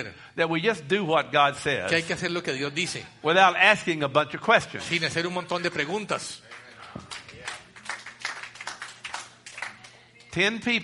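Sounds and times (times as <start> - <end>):
speech: 0.0 - 7.2, 10.3 - 10.8
small audience clapping: 6.2 - 10.4.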